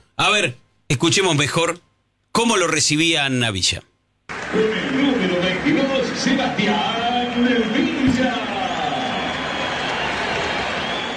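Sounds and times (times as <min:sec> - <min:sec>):
speech: 0:00.2 - 0:03.9, 0:04.5 - 0:05.1, 0:05.7 - 0:08.5
scattered applause: 0:04.3 - 0:11.1
stadium crowd whistling: 0:04.3 - 0:11.1.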